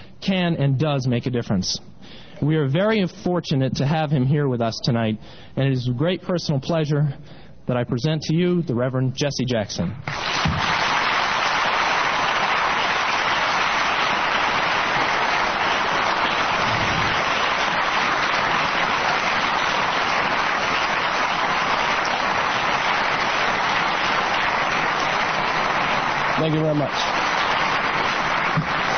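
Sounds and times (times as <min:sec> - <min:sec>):
speech: 0:00.2 - 0:10.7
large audience applause: 0:10.1 - 0:28.9.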